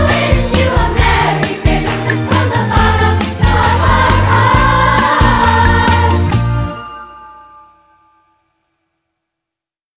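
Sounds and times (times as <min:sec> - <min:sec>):
choir singing: 0:00.0 - 0:06.6.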